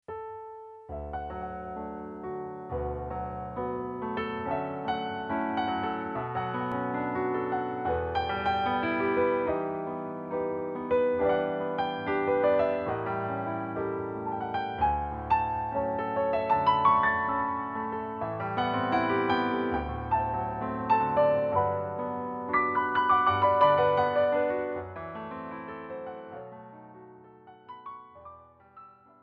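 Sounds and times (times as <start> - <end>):
piano: 0.0 - 29.2.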